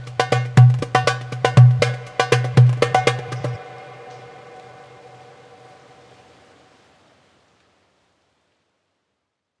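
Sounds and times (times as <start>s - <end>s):
darbuka drumming: 0.0s - 3.6s.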